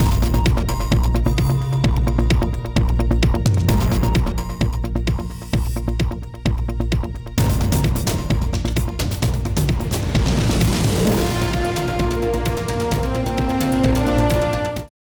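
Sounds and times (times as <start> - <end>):
music: 0.0 - 15.0.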